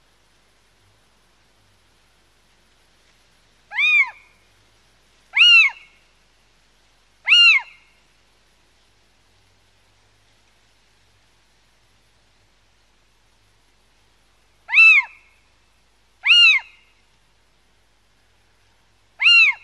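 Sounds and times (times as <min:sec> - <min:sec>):
little owl mewing call rising and falling: 0:03.7 - 0:04.4, 0:05.3 - 0:06.0, 0:07.2 - 0:07.9, 0:14.7 - 0:15.3, 0:16.2 - 0:17.0, 0:19.2 - 0:19.6.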